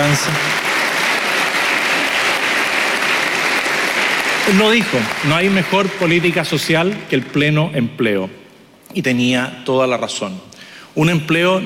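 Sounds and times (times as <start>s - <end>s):
audience applause: 0.0s - 7.7s
speech: 0.2s - 0.6s, 4.5s - 11.6s.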